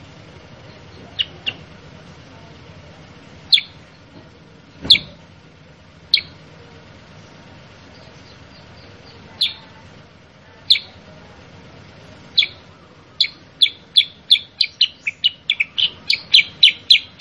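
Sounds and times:
Sooty-headed bulbul calls: 0.0s - 1.9s, 3.4s - 4.1s, 4.8s - 5.2s, 6.1s - 6.5s, 7.8s - 11.1s, 12.2s - 17.1s.

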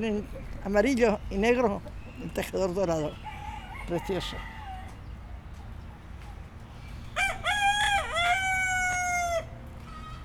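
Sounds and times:
speech: 0.0s - 3.3s, 3.9s - 4.5s
rooster crowing: 3.2s - 5.1s, 7.1s - 10.2s.

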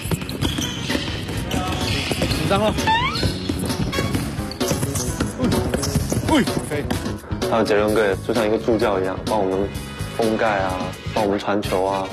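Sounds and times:
basketball bouncing during layup practice: 0.0s - 7.2s
speech: 2.5s - 3.0s, 6.3s - 12.1s.

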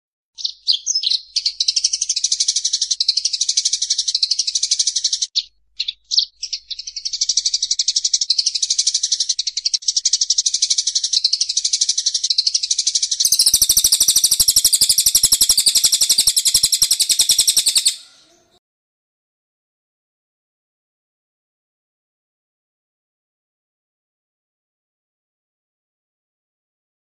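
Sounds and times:
bird song of high sharp chirps: 0.4s - 18.6s.

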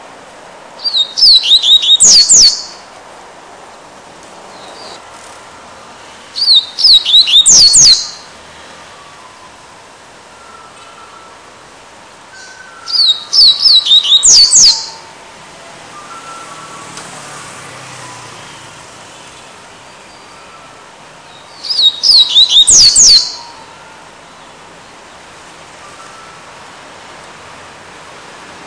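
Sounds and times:
double-collared seedeater whistled song: 0.8s - 2.8s, 6.4s - 8.3s, 10.3s - 11.6s, 12.3s - 15.2s, 15.8s - 17.0s, 18.0s - 23.9s, 25.8s - 26.6s.

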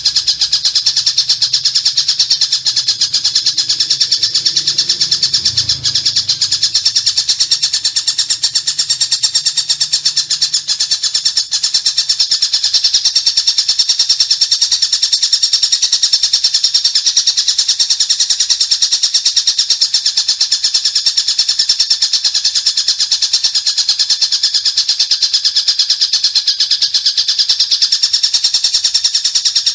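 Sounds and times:
Oriental magpie-robin song: 0.0s - 29.7s.

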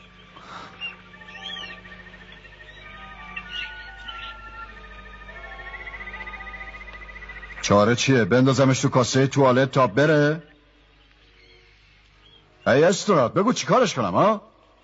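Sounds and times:
small bird chirping: 0.0s - 7.6s, 10.8s - 12.8s
steady low hum: 0.0s - 13.4s
speech: 7.7s - 10.5s, 12.7s - 14.5s.

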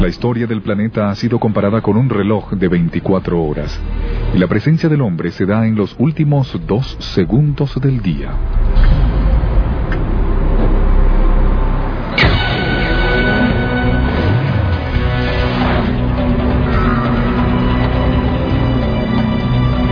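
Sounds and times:
speech: 0.0s - 9.2s
car engine humming while driving laps around a track: 6.0s - 19.9s.

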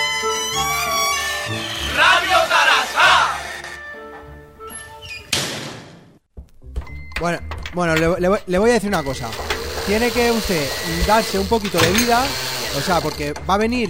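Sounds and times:
bar door opening: 0.0s - 5.6s, 6.7s - 8.2s, 8.9s - 13.5s
people shouting: 1.8s - 3.5s
speech: 7.2s - 13.8s.

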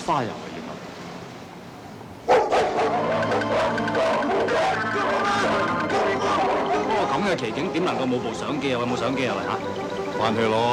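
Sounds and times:
speech: 0.1s - 0.5s, 3.8s - 10.7s
busy murmur of sound: 0.6s - 10.7s
pack of male dogs barking on Cheung Chau: 2.3s - 7.0s.

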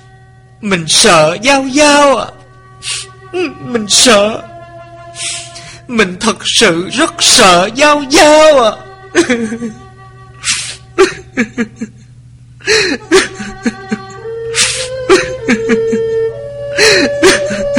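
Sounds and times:
speech: 0.6s - 4.5s, 5.2s - 9.8s, 11.0s - 12.0s, 12.7s - 13.8s
muffled sobbing: 2.9s - 17.7s
laughter: 3.7s - 5.6s, 9.2s - 9.8s, 11.0s - 12.1s, 12.7s - 16.2s.

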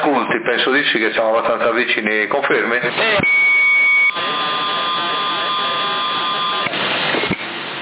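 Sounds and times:
speech: 0.8s - 3.5s
radio static: 2.8s - 7.5s
high-pitched carrier whistle on a CB radio channel: 3.2s - 7.4s.

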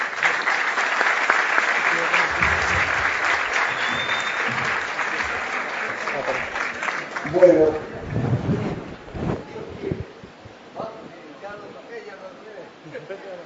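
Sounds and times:
audience applause welcoming a speaker at a conference talk: 0.0s - 8.3s
speech: 7.4s - 8.8s.

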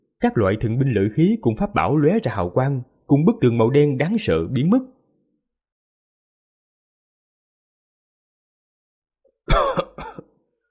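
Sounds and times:
speech: 0.2s - 5.0s
man on a boat coughing up blood: 9.5s - 10.4s.

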